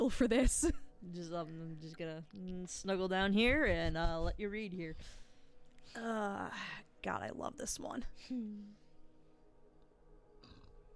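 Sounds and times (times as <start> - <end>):
speech: 0.1 - 5.2, 5.8 - 8.8
person burping: 10.4 - 10.9.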